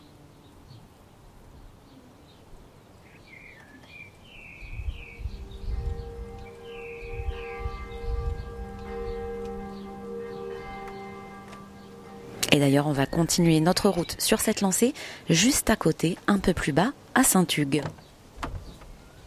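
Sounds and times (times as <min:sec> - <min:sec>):
bird chirps: 0:03.0 - 0:14.6
monastery church bell ringing in the Chartreuse massif: 0:05.0 - 0:14.6
speech: 0:12.6 - 0:18.0.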